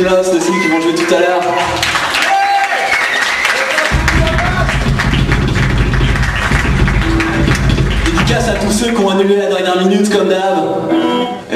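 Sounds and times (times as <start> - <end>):
speech: 0.0 - 2.0, 8.4 - 11.5
audience applause: 0.2 - 9.0
low rumble: 3.9 - 9.1.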